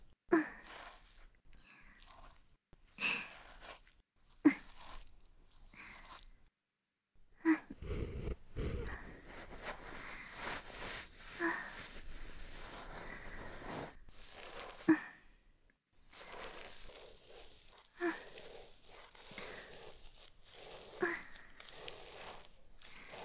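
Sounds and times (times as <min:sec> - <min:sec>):
binaural breathing during ear cleaning: 0:01.6 - 0:02.2, 0:07.6 - 0:14.0, 0:18.0 - 0:23.2
binaural ear cleaning: 0:07.7 - 0:15.0, 0:16.1 - 0:23.2.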